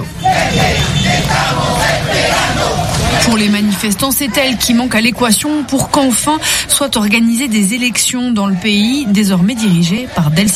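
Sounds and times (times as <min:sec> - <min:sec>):
crowd of protesters shouting: 0:00.0 - 0:05.9, 0:08.0 - 0:10.5
speech: 0:03.3 - 0:10.5.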